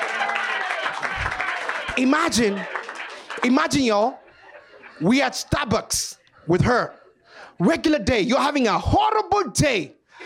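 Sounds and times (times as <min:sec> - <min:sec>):
audience clapping: 0:00.0 - 0:04.2
laughter: 0:00.7 - 0:05.8
speech: 0:02.0 - 0:02.8, 0:03.4 - 0:04.2, 0:05.0 - 0:07.0, 0:07.6 - 0:10.0.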